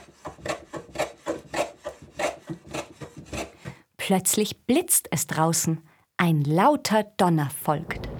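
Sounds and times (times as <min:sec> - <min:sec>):
hand plane shaving wood: 0:00.0 - 0:03.8
speech: 0:04.1 - 0:08.1.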